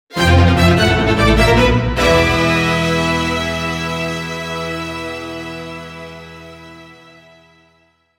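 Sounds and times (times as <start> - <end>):
orchestral stage complete game jingle: 0.1 - 7.4.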